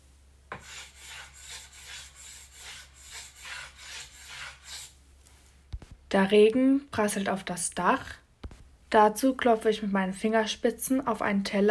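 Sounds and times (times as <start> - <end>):
wooden spoon rubbed against a shelf: 0.5 - 5.5
speech: 6.1 - 8.2, 8.9 - 11.6.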